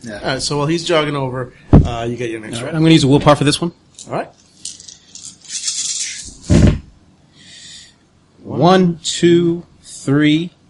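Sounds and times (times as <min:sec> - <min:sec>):
speech: 0:00.0 - 0:04.4, 0:08.6 - 0:10.6
dice being shaken and rolled: 0:04.5 - 0:06.4.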